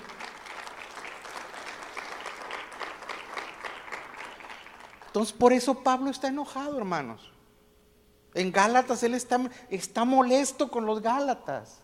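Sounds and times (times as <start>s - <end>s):
audience applauding loudly: 0.0s - 5.2s
speech: 5.2s - 7.4s, 8.4s - 11.8s.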